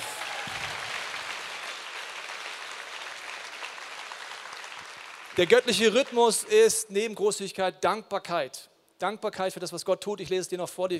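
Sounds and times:
audience applause: 0.0s - 6.6s
speech: 5.4s - 10.9s.

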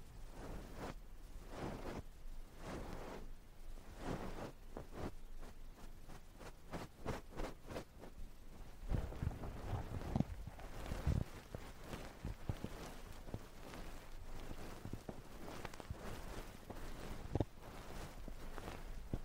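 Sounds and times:
ear cleaning and ear massage rubbing: 0.3s - 19.2s
thumps: 6.7s - 19.2s.

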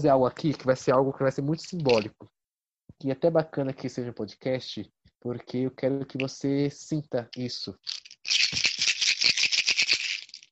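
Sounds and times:
speech: 0.0s - 2.3s, 3.0s - 8.7s
bottle of antiretroviral pills rattling: 1.6s - 2.1s, 7.4s - 10.4s.

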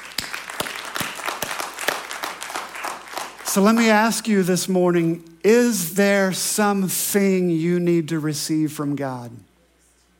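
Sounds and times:
audience applause: 0.0s - 4.2s
speech: 3.6s - 9.5s.

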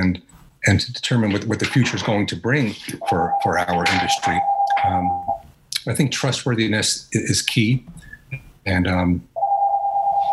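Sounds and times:
speech: 0.0s - 9.3s
telephone ringing: 3.0s - 5.4s, 9.4s - 10.3s.

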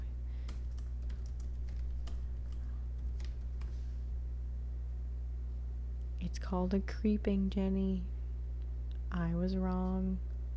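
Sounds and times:
typing on a computer keyboard during a web search: 0.0s - 4.0s
constant low hum: 0.0s - 10.5s
speech: 6.2s - 8.2s, 9.1s - 10.3s.

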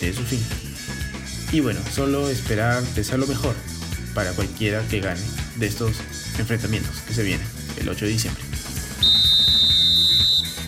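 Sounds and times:
speech: 0.0s - 0.7s, 1.5s - 8.4s
referee's final whistle blast: 9.0s - 10.6s.

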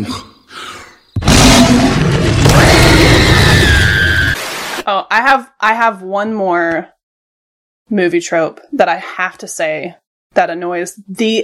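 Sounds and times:
monster roar sound effect: 1.2s - 4.4s
speech: 5.0s - 7.0s, 7.9s - 11.4s.

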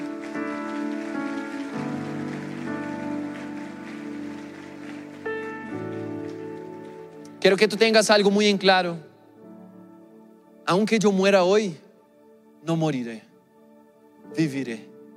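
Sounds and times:
audience applause: 0.0s - 7.8s
speech: 7.4s - 9.1s, 10.7s - 11.8s, 12.6s - 13.3s, 14.3s - 14.9s.

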